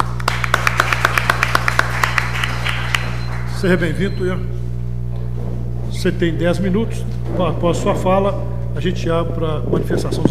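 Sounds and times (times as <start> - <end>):
audience applause: 0.0 - 3.6
speech: 3.6 - 4.7, 6.0 - 10.2.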